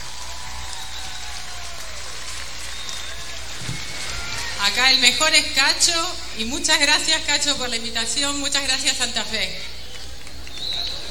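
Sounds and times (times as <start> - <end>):
audience applause: 0.0 - 11.0
speech: 4.6 - 9.7.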